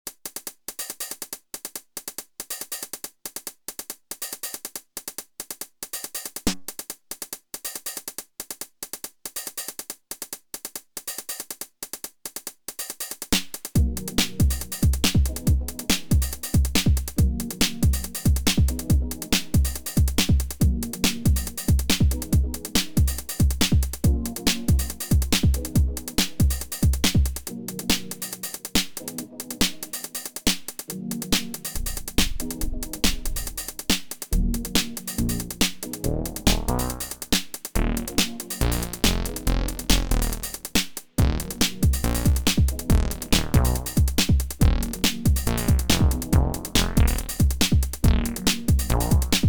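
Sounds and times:
electro beat: 13.3s - 49.4s.

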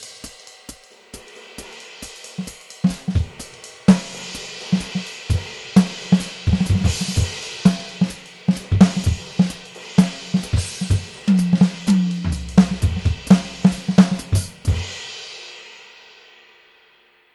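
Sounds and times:
Stockholm jazz: 2.4s - 14.9s.

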